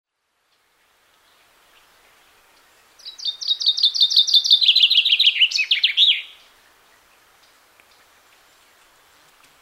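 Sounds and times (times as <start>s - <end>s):
common chaffinch singing: 1.2s - 7.2s.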